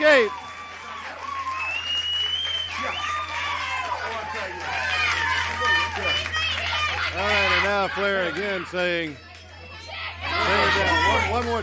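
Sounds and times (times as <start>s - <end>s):
wrestling arena crowd cheering: 0.0s - 11.6s
speech: 0.2s - 0.4s, 7.8s - 9.3s, 10.5s - 11.6s
whistles and shouts: 0.2s - 3.4s.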